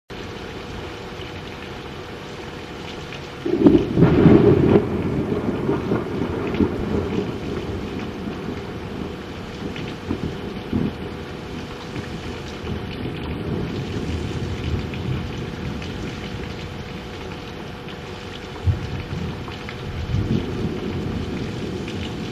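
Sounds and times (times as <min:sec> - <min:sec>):
thunder: 0:03.4 - 0:16.7, 0:18.6 - 0:22.3.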